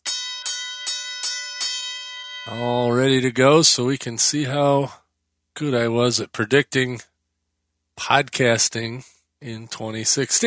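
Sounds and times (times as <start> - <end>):
handheld bell rung by a podcast host at his desk: 0.0 - 2.6
speech: 2.5 - 5.0, 5.6 - 7.1, 8.0 - 10.4.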